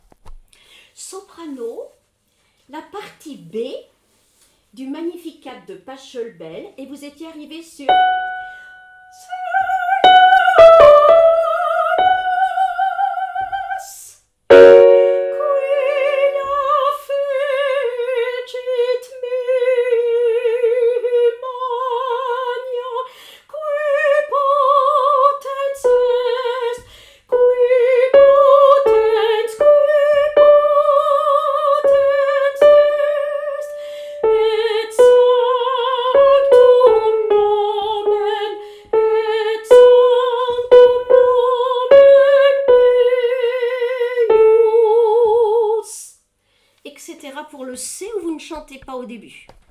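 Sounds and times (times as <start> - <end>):
soprano singing: 7.9 - 46.0.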